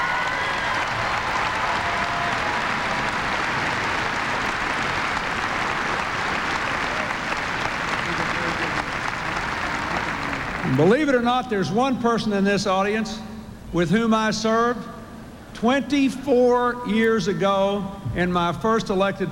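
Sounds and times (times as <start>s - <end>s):
audience applause at a presidential speaking event: 0.0s - 10.9s
speech: 10.7s - 14.9s, 15.6s - 19.2s.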